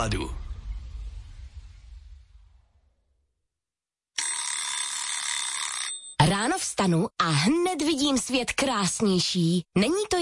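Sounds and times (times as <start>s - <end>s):
speech: 0.0s - 0.4s, 6.6s - 10.1s
doorbell ringing: 4.2s - 6.2s.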